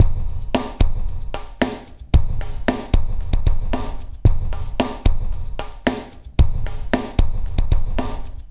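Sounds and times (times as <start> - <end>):
liquid groove music: 0.0 - 8.4.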